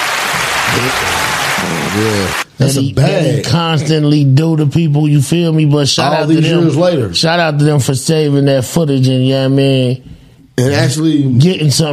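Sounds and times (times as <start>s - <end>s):
clapping applause: 0.0s - 2.5s
speech: 0.8s - 11.9s.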